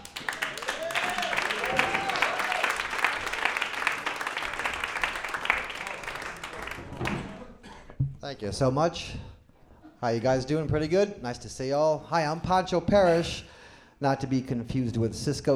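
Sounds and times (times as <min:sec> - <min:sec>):
audience applause for a comedian: 0:00.0 - 0:07.5
speech: 0:08.3 - 0:09.3, 0:10.0 - 0:15.5.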